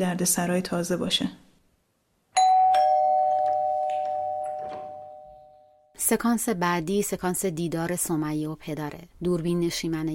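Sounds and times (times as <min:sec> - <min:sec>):
speech: 0:00.0 - 0:01.5, 0:06.1 - 0:10.1
doorbell chiming: 0:02.4 - 0:05.9.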